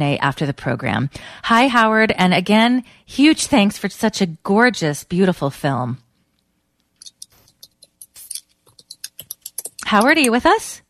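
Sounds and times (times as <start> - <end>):
speech: 0.0 - 6.0, 9.9 - 10.8
typing on a keyboard: 7.0 - 10.5.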